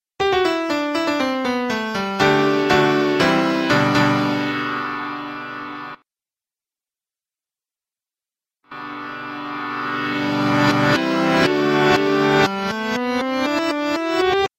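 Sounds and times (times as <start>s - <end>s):
piano: 0.2s - 6.0s, 8.7s - 14.5s.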